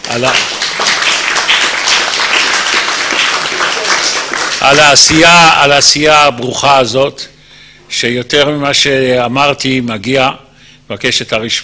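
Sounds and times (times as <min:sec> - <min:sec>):
audience applause at a gathering: 0:00.0 - 0:05.3
speech: 0:00.1 - 0:00.6, 0:04.6 - 0:07.3, 0:07.9 - 0:11.6.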